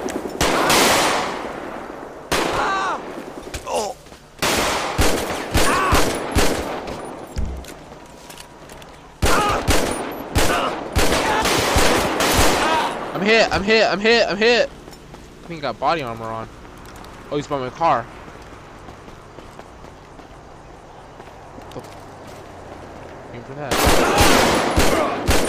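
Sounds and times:
gunfire in rapid volleys: 0:00.0 - 0:01.6, 0:04.4 - 0:07.7, 0:09.2 - 0:13.1, 0:23.7 - 0:25.4
commotion and shouting voices: 0:02.4 - 0:03.0, 0:05.5 - 0:06.2, 0:09.2 - 0:09.7, 0:10.4 - 0:13.3, 0:23.8 - 0:25.3
speech: 0:13.3 - 0:14.8, 0:15.5 - 0:16.6, 0:17.3 - 0:18.2, 0:23.4 - 0:24.6.

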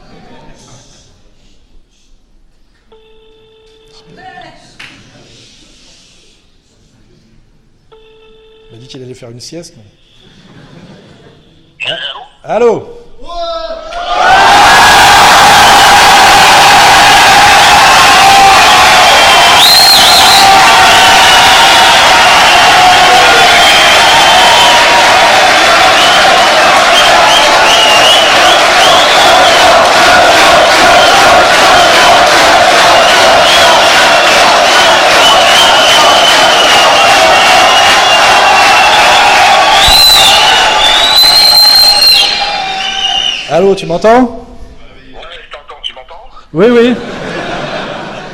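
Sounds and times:
speech: 0:04.0 - 0:04.3, 0:08.7 - 0:10.1, 0:12.5 - 0:13.0, 0:43.6 - 0:44.4, 0:46.6 - 0:47.1
laughter: 0:10.2 - 0:11.7, 0:46.8 - 0:48.3
large crowd in a hall cheering and shouting: 0:13.3 - 0:43.5
shrill whistles: 0:14.6 - 0:29.9, 0:32.9 - 0:43.6.

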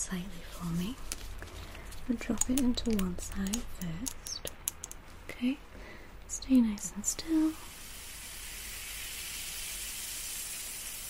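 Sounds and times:
speech: 0:00.1 - 0:01.1, 0:02.1 - 0:04.2, 0:05.4 - 0:05.7, 0:06.3 - 0:07.7
fizzing ear-cleaning solution in ear: 0:07.6 - 0:11.0.

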